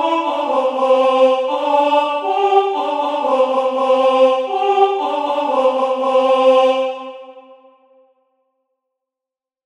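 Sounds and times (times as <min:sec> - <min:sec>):
Paiute song: 0:00.0 - 0:07.5.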